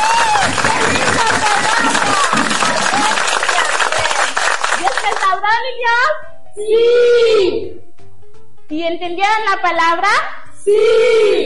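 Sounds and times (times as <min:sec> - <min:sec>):
children applauding: 0:00.0 - 0:05.3
speech: 0:06.1 - 0:07.8, 0:08.7 - 0:11.4.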